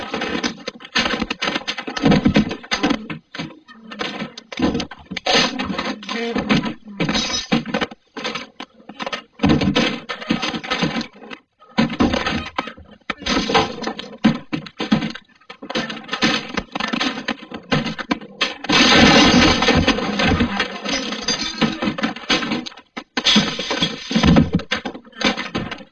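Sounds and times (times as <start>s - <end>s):
bar fight: 0.0s - 25.9s.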